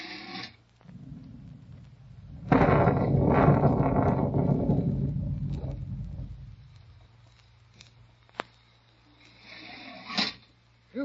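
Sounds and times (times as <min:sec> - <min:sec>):
rain: 0:00.7 - 0:06.6
loud crack of thunder rumbling heavily: 0:00.8 - 0:07.3.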